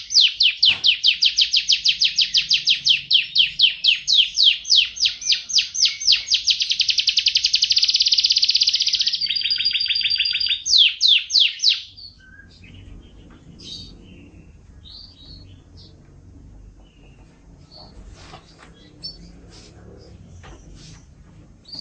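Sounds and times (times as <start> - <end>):
bird song with high whistled and chirping phrases and rapid trill: 0.0 - 16.0.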